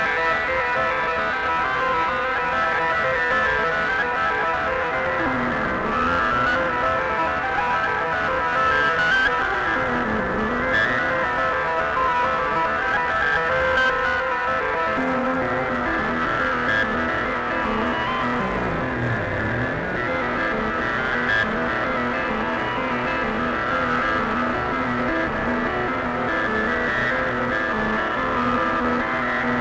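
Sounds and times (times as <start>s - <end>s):
saxophone: 0.0s - 29.5s
electronic music: 16.6s - 20.8s.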